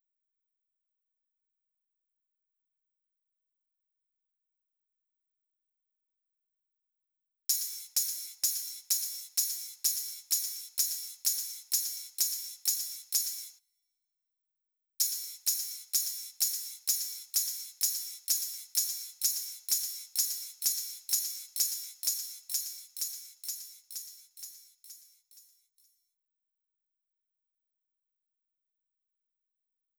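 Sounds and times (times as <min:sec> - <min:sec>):
drum loop with ride cymbal: 0:07.5 - 0:13.5, 0:15.0 - 0:25.1.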